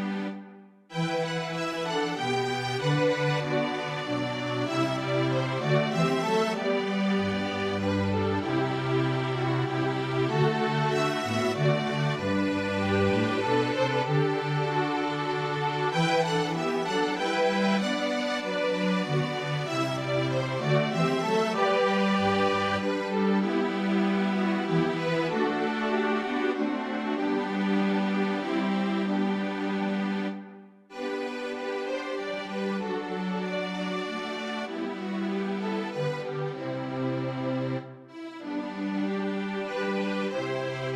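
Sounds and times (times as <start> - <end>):
string quartet playing: 0.0 - 40.9.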